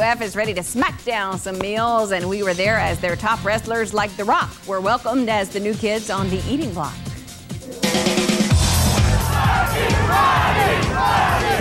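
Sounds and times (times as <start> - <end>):
speech: 0.0 - 7.1, 9.8 - 11.5
wrestling crowd cheering and chanting: 7.8 - 11.5.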